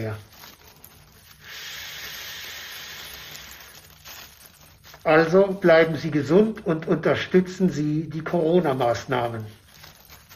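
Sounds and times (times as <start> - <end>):
speech: 0.0 - 0.4, 5.0 - 9.6
person breathing alternately into two bags: 0.3 - 5.1.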